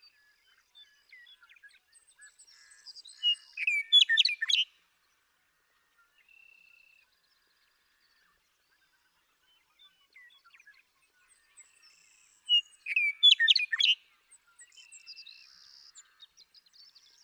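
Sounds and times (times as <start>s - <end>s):
Western Meadowlark singing: 0.8s - 4.7s, 11.6s - 17.2s.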